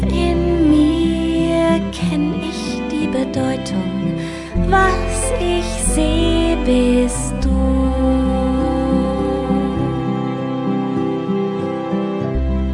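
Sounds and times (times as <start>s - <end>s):
person singing: 0.0s - 12.6s.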